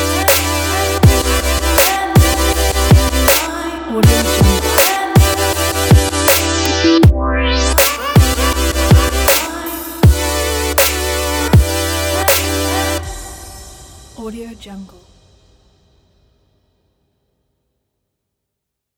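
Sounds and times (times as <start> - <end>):
future bass music: 0.0 - 13.4.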